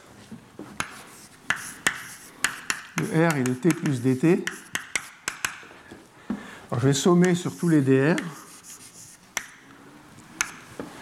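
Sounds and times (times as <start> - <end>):
writing on a board during a physics lecture: 0.8 - 5.6, 7.2 - 9.6
sharp clicking taps: 1.5 - 5.6
speech: 3.0 - 4.6, 6.8 - 8.4.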